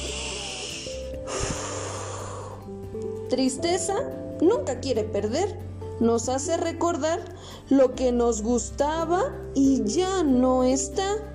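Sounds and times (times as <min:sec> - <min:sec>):
deep breath: 0:00.0 - 0:02.8, 0:07.3 - 0:07.7
speech: 0:03.3 - 0:11.3.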